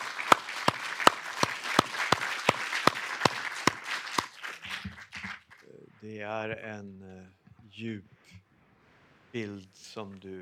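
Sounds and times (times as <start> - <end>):
applause: 0.0 - 5.7
speech: 6.0 - 8.2, 9.3 - 10.3.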